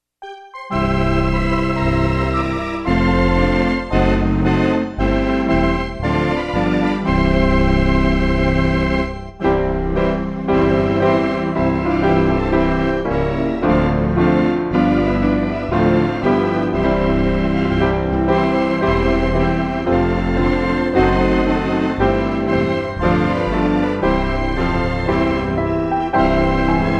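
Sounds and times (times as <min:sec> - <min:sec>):
instrumental music: 0:00.2 - 0:26.9.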